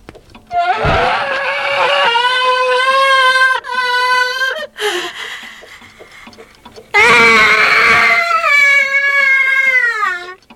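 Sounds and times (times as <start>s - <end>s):
scream-like wails played by a grandfather clock: 0.5s - 5.3s, 7.0s - 10.5s.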